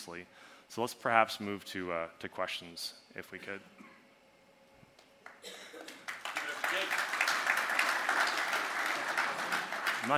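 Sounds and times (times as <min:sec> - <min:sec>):
speech: 0:00.0 - 0:03.9
audience clapping: 0:05.2 - 0:10.1.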